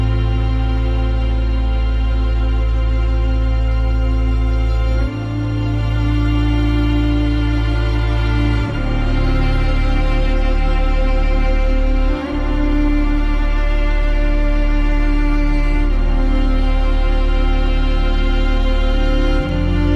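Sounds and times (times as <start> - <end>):
sad strings and pads: 0.0 - 19.9.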